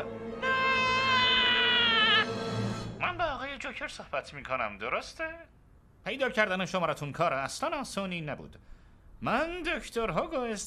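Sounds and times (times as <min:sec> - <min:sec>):
answering machine scream tone: 0:00.0 - 0:03.0
speech: 0:03.8 - 0:10.6.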